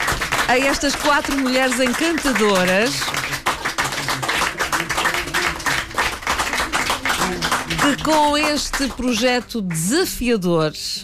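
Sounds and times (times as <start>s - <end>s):
applause thanking four women singers: 0.0s - 9.8s
speech: 0.5s - 3.3s, 7.9s - 11.0s.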